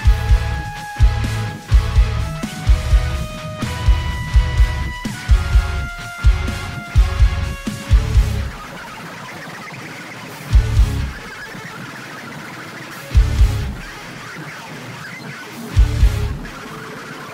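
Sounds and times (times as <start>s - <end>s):
extreme bass: 0.0s - 8.6s, 10.6s - 11.2s, 13.2s - 13.8s, 15.8s - 16.4s.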